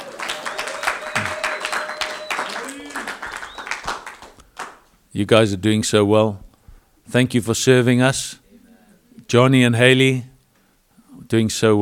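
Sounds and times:
round of applause: 0.0 - 4.9
speech: 5.2 - 6.5, 7.1 - 8.4, 9.3 - 10.3, 11.3 - 11.8.

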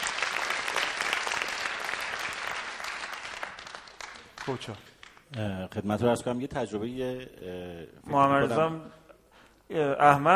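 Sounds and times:
audience applause: 0.0 - 5.2
speech: 4.5 - 9.0, 9.7 - 10.3.

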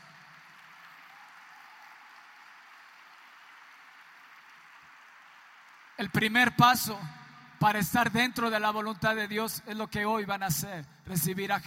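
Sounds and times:
crowd applause: 0.0 - 6.4
speech: 6.0 - 11.6.

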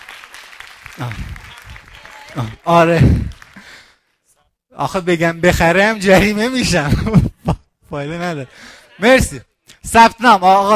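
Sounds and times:
audience applause: 0.0 - 4.1
speech: 1.0 - 1.4, 2.3 - 3.4, 4.8 - 10.7.

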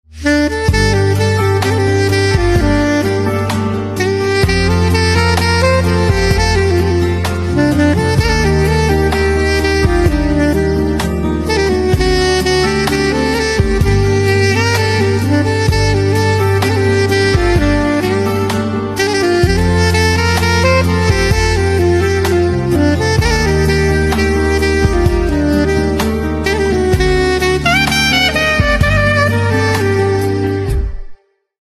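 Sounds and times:
saxophone instrumental ringtone: 0.2 - 31.3.

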